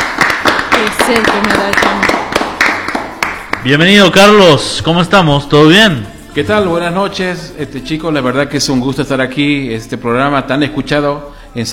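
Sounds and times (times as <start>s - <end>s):
audience applause: 0.0s - 3.7s
speech: 1.1s - 2.1s, 3.6s - 11.7s.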